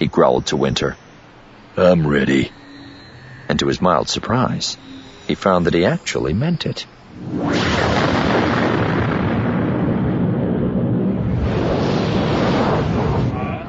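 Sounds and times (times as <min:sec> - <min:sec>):
speech: 0:00.0 - 0:01.0, 0:01.8 - 0:02.6, 0:03.5 - 0:08.2
hissing roar of rolling flame: 0:07.2 - 0:13.6.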